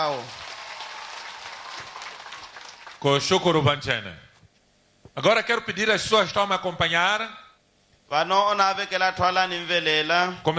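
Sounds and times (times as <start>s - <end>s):
speech: 0.0s - 0.4s, 3.0s - 4.2s, 5.2s - 7.4s, 8.1s - 10.5s
audience applause: 0.0s - 3.3s.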